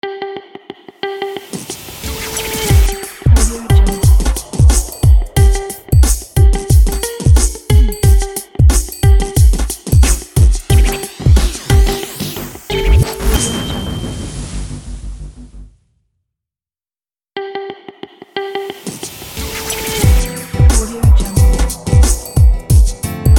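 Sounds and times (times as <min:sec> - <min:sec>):
hip hop intro jingle: 0:02.1 - 0:15.0, 0:19.8 - 0:23.3.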